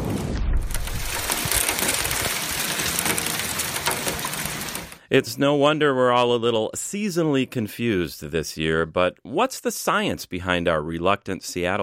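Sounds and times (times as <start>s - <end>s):
thundersleet falling in Burnsville: 0.0s - 5.0s
speech: 5.1s - 11.8s.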